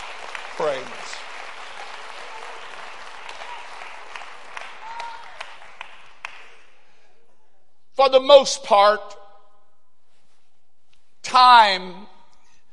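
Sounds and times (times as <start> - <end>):
audience clapping: 0.0 - 6.8
speech: 0.6 - 1.3, 8.0 - 9.2, 11.4 - 12.0.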